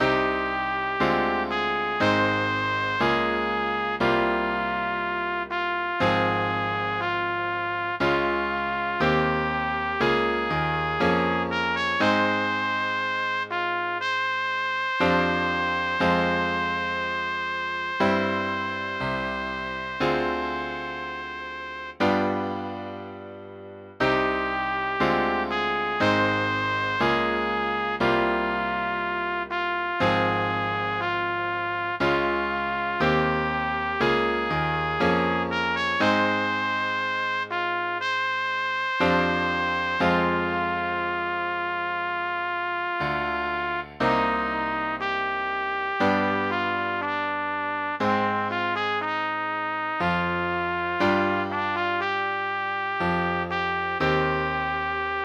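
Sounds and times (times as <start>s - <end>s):
mournful music for trumpet and piano: 0.0s - 55.2s.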